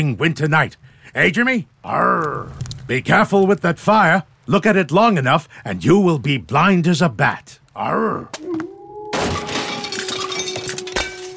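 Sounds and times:
speech: 0.0s - 8.7s
dishes crashing: 9.1s - 11.3s.

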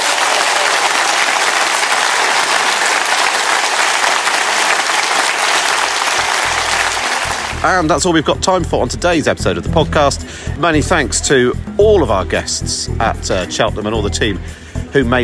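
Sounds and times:
crowd applause: 0.0s - 7.9s
speech: 7.6s - 15.2s.

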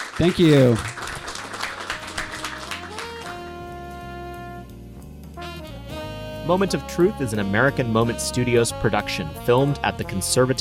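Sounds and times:
audience applause: 0.0s - 3.5s
speech: 0.2s - 1.0s, 6.5s - 10.5s.

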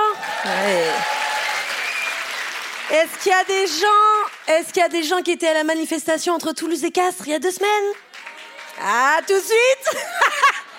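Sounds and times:
cheer or whoop: 0.0s - 2.3s
crowd clapping: 0.0s - 5.3s, 7.8s - 9.6s
speech: 0.4s - 1.2s, 2.9s - 8.1s, 8.8s - 10.2s.

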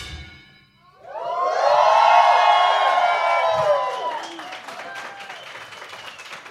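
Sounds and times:
cheering: 0.9s - 6.4s
applause: 2.1s - 6.4s.

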